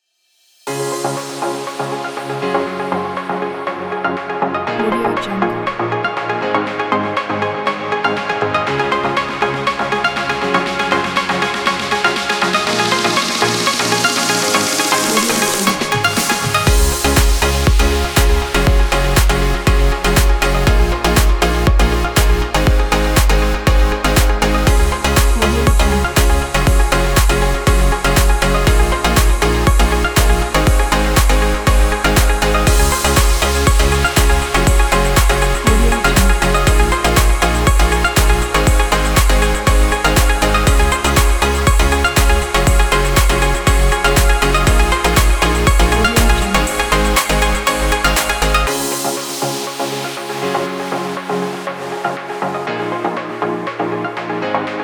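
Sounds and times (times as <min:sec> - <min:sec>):
summer EDM music: 0:00.7 - 0:54.8.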